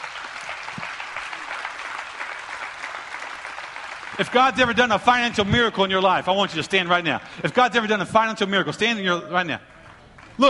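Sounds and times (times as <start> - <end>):
audience clapping hands: 0.0 - 8.4, 9.8 - 10.4
speech: 4.2 - 9.8.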